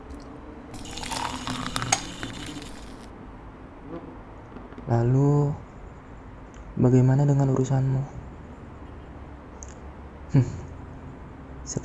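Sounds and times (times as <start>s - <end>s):
spoon clinking against glass: 0.8s - 3.0s
liquid pouring or stirring while making coffee: 0.8s - 3.1s
speech: 4.9s - 5.6s, 6.8s - 8.2s, 10.3s - 10.6s, 11.7s - 11.8s.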